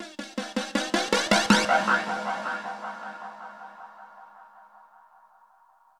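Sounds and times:
ambient drum loop: 0.0s - 4.4s.

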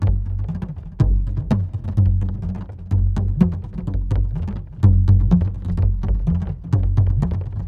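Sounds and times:
ethnic percussion loop: 0.0s - 7.6s.

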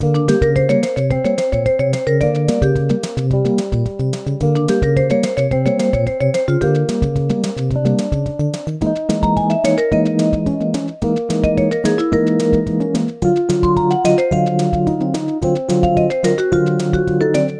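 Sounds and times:
music: 0.0s - 17.5s.

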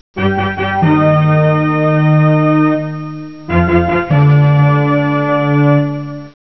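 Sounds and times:
classical music: 0.2s - 6.4s.

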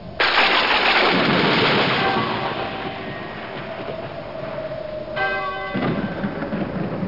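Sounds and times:
gongs: 0.9s - 7.0s.

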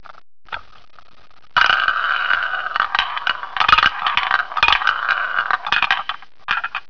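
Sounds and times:
roulette wheel: 1.6s - 6.8s.

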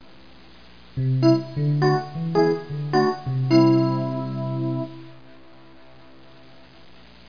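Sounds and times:
synth: 1.0s - 6.8s.

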